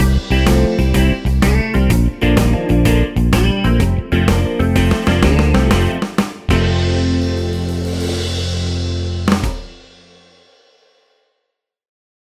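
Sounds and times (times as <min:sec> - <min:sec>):
eight-beat rock drum beat: 0:00.0 - 0:10.6.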